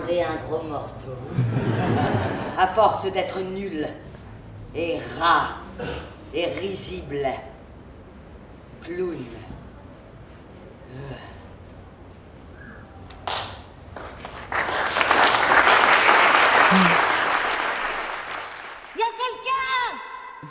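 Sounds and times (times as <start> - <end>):
speech: 0.1 - 7.5, 8.8 - 9.5, 10.9 - 11.3
laughter: 1.2 - 2.8, 16.5 - 17.4
audience applause: 13.2 - 19.0.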